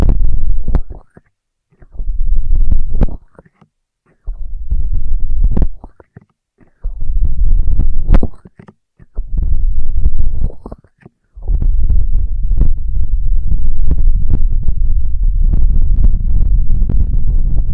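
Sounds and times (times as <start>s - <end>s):
muffled low rumbling bursts on ear triggers: 0.0s - 0.9s, 1.9s - 3.2s, 4.3s - 5.8s, 6.8s - 8.3s, 9.2s - 10.6s, 11.4s - 17.7s
continuous rubbing: 0.4s - 13.2s.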